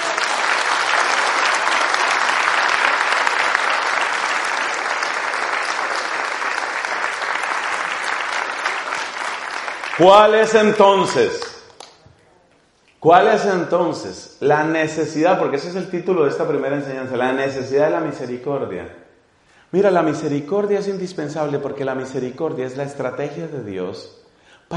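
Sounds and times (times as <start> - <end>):
audience applause: 0.0 - 11.8
speech: 10.0 - 11.5, 13.0 - 19.0, 19.7 - 24.7.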